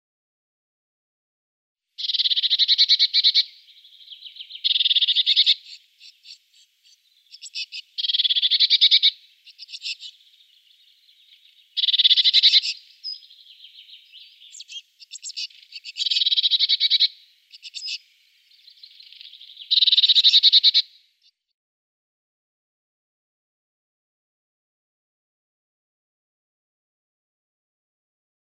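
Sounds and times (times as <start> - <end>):
great tit song: 2.0 - 21.4.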